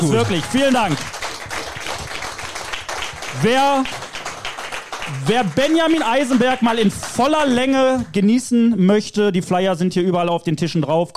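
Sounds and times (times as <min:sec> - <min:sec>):
speech: 0:00.0 - 0:01.2, 0:03.4 - 0:04.0, 0:05.1 - 0:11.1
applause: 0:00.0 - 0:08.2.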